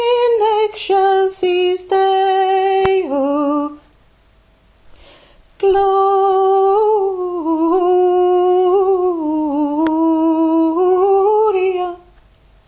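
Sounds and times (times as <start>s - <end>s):
low voice singing a carol: 0.0s - 3.8s, 5.6s - 12.1s.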